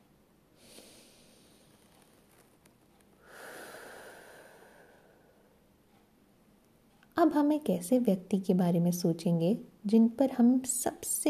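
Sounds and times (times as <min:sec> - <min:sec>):
long deep breath during a mindfulness exercise: 0:03.2 - 0:05.6
speech: 0:07.2 - 0:11.2.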